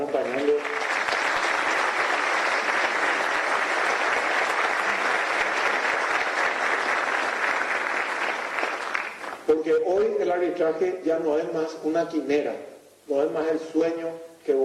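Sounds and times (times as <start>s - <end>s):
loud applause from audience: 0.0s - 9.5s
speech: 10.3s - 14.6s.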